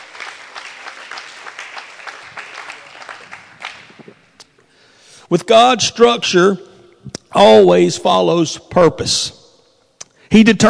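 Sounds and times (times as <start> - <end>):
audience clapping: 0.0 - 4.4
speech: 5.3 - 6.7, 7.3 - 9.4, 10.3 - 10.6.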